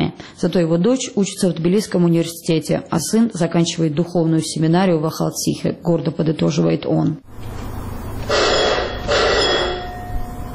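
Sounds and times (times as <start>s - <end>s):
speech: 0.4s - 7.7s
electric bell signalling a mine cable car is ready to depart: 8.2s - 10.5s.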